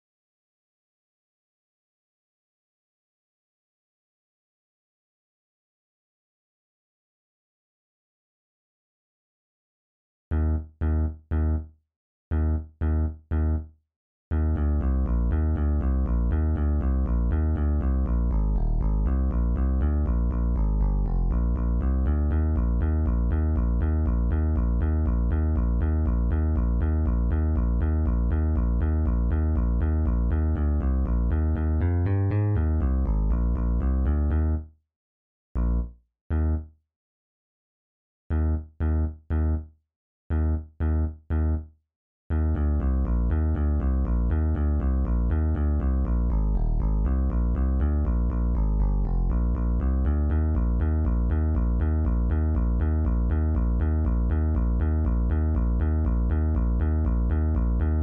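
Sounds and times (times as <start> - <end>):
bass: 10.3 - 11.7, 12.3 - 13.7, 14.3 - 34.7, 35.6 - 36.7, 38.3 - 39.7, 40.3 - 41.7, 42.3 - 58.0.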